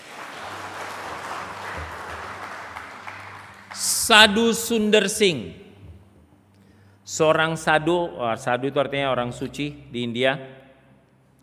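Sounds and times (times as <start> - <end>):
crowd applause: 0.0 - 4.4
speech: 4.1 - 5.6, 7.2 - 10.6.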